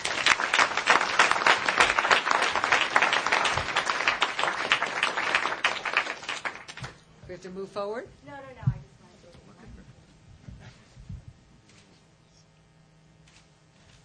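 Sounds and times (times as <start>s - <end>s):
audience applause: 0.0s - 7.0s
speech: 7.4s - 8.8s.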